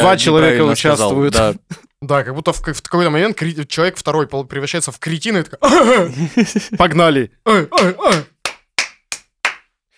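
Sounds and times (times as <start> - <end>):
speech: 0.0 - 8.3
laughter: 5.6 - 7.0
hand claps: 7.8 - 9.8.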